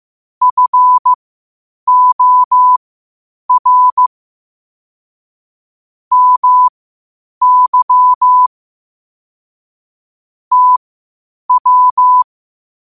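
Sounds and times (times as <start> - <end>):
morse code at 5 wpm: 0.4 - 1.2, 1.9 - 2.8, 3.5 - 4.1, 6.1 - 6.7, 7.4 - 8.5, 10.5 - 10.8, 11.5 - 12.3.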